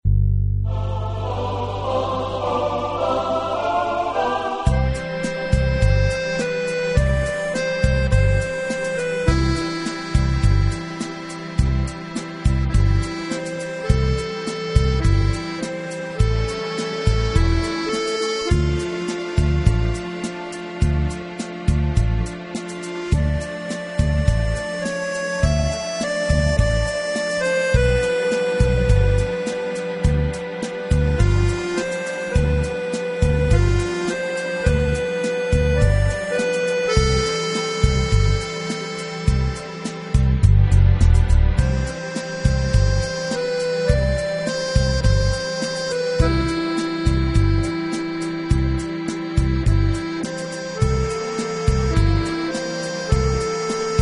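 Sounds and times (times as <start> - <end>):
accordion tune: 0.7 - 53.9.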